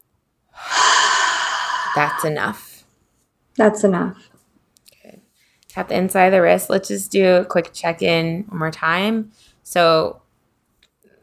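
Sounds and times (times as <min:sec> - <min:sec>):
deep breath inhale during a guided breathing exercise: 0:00.6 - 0:02.6
speech: 0:02.0 - 0:02.7, 0:03.6 - 0:04.3, 0:05.7 - 0:10.2.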